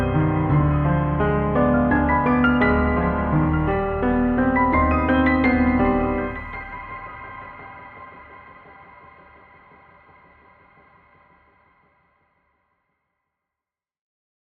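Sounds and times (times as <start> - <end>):
dark keys: 0.0 - 9.2.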